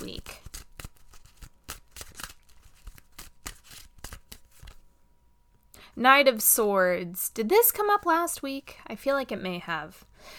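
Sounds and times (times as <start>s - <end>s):
tarot cards being shuffled: 0.0s - 4.9s
speech: 6.0s - 10.3s.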